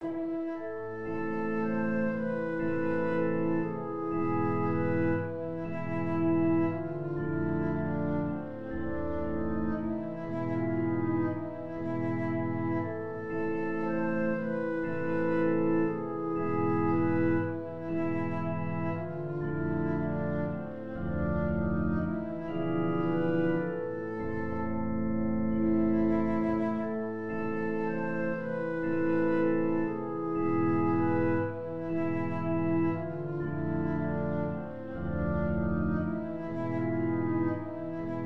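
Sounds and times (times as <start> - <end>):
organ: 0.0 - 38.2.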